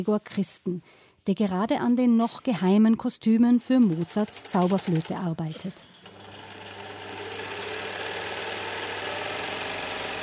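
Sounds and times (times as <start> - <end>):
speech: 0.0 - 5.9
sewing machines rattling in the next room: 3.7 - 10.2.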